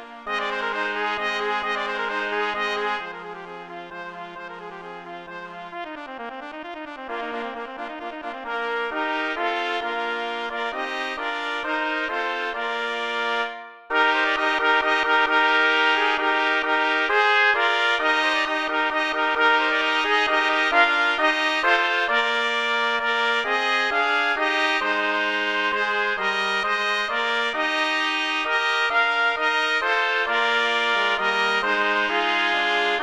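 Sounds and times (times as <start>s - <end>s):
intermediate trumpet quartet playing: 0.0s - 4.0s, 7.2s - 33.0s.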